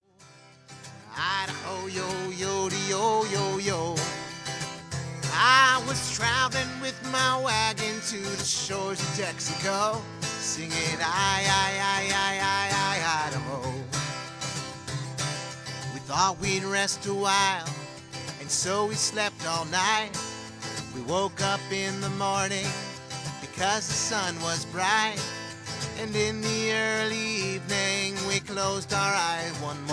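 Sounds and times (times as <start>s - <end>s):
humorous acoustic music: 0.2s - 29.9s.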